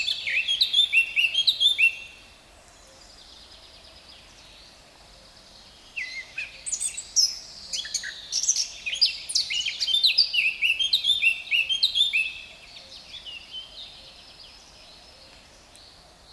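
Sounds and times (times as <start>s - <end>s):
Sylvia atricapilla Eurasian blackcap singing: 0.0s - 2.2s, 6.0s - 12.5s.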